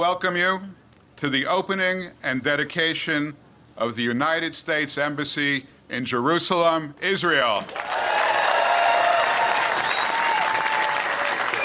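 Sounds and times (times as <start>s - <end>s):
speech: 0.0s - 7.9s
thunderous applause at a standing ovation: 7.7s - 11.6s.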